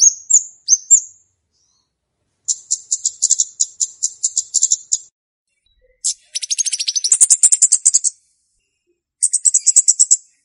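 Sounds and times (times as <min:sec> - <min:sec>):
flowerpecker ticking call series: 0:02.5 - 0:05.1, 0:05.9 - 0:08.2, 0:09.2 - 0:10.3.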